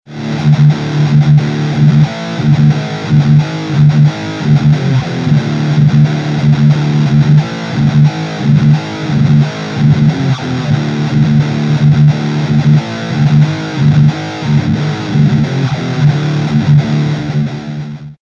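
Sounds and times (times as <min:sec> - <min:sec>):
MT2 guitar effect: 0:00.1 - 0:18.2.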